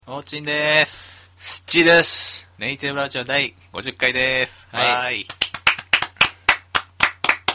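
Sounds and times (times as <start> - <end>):
speech: 0.1 - 1.0, 1.7 - 5.4
hosts clapping hands: 4.8 - 7.5.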